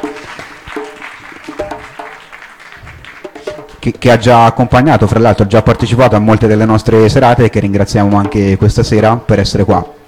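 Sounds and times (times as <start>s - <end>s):
audience applause for the percussionist at an evening of poetry readings: 0.0s - 3.8s
speech: 3.8s - 10.0s.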